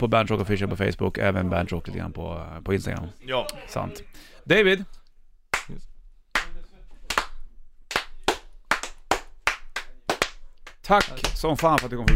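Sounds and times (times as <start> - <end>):
speech: 0.0 - 5.0, 5.7 - 5.9, 10.9 - 12.1
applause: 7.1 - 11.9.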